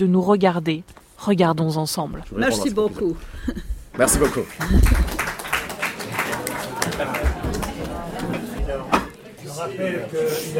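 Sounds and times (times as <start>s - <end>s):
speech: 0.0s - 5.2s, 9.6s - 10.5s
audience applause: 4.2s - 8.5s
murmur of crowd voices: 5.7s - 10.5s.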